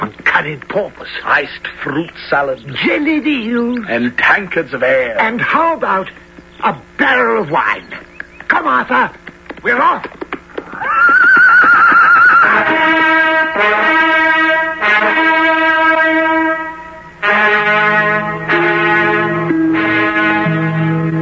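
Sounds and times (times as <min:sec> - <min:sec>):
speech: 0:00.4 - 0:10.2
horse whinnying: 0:10.7 - 0:12.6
long held tonal notes: 0:11.8 - 0:21.2.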